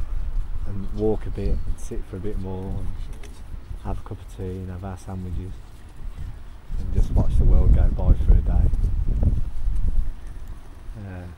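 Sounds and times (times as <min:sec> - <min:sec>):
gusting wind on microphone by the sea: 0:00.0 - 0:11.3
speech: 0:01.0 - 0:09.5, 0:11.0 - 0:11.3.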